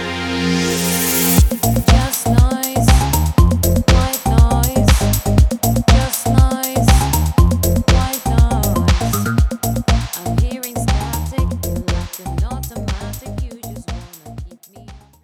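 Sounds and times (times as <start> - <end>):
instrumental soundtrack: 0.0 - 14.7
female singer: 1.6 - 15.2.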